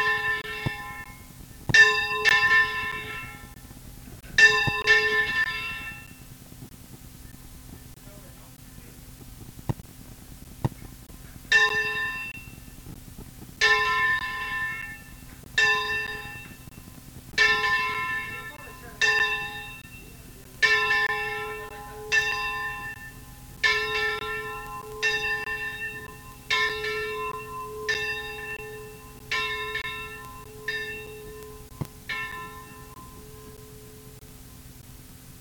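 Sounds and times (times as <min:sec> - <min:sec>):
bell: 0:00.0 - 0:03.6, 0:04.3 - 0:06.3, 0:11.5 - 0:12.8, 0:13.6 - 0:16.8, 0:17.4 - 0:34.3.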